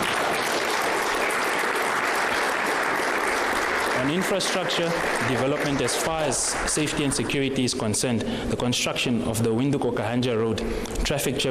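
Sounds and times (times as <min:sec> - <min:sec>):
audience applause: 0:00.0 - 0:07.6
speech: 0:04.0 - 0:11.4.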